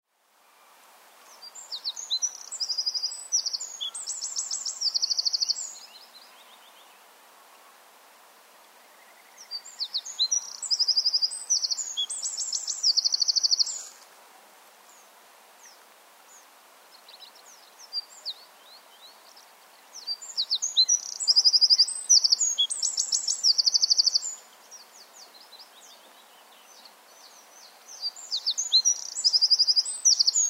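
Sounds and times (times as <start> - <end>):
background hiss: 0.0 - 30.4
Eurasian wren song: 1.4 - 6.8, 9.0 - 14.0, 19.0 - 30.4.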